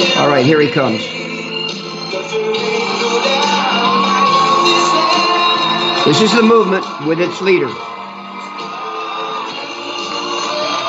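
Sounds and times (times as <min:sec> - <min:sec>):
speech: 0:00.1 - 0:01.3, 0:06.0 - 0:07.9
large crowd cheering at a Trump rally: 0:02.5 - 0:10.8.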